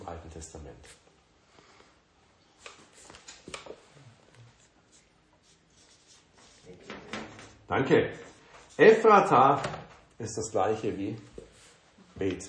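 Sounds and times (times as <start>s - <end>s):
speech: 0.2s - 1.1s, 7.7s - 8.2s, 8.8s - 11.3s, 12.2s - 12.4s
scratching of handwriting: 4.5s - 6.8s.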